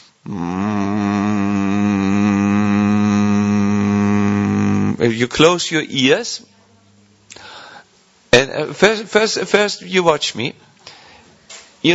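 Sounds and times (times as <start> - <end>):
person humming: 0.0 - 5.2
speech: 0.3 - 0.7, 5.0 - 6.5, 8.7 - 10.6.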